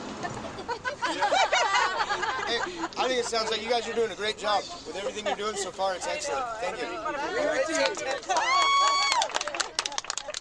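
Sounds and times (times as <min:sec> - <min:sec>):
laughter: 0:00.2 - 0:10.3
speech: 0:03.3 - 0:08.7
audience applause: 0:07.8 - 0:10.3.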